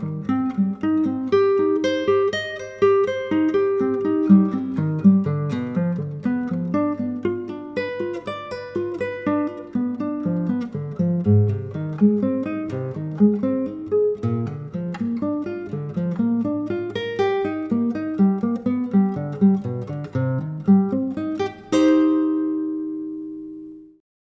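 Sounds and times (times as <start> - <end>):
solo acoustic classical guitar playing a triad study: 0.0 - 24.0.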